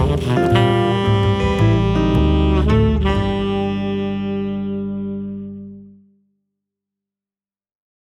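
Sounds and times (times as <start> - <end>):
instrumental jazz trio playing blues: 0.0 - 6.0.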